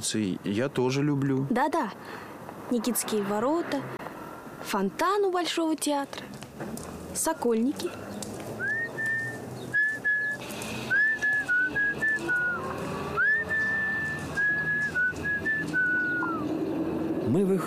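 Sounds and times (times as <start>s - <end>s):
speech: 0.0s - 4.0s, 4.6s - 8.1s, 17.4s - 17.6s
person whistling a tune: 8.6s - 16.4s.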